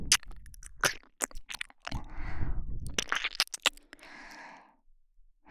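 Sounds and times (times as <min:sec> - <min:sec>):
ASMR ear licking: 0:00.1 - 0:02.1, 0:02.9 - 0:04.1.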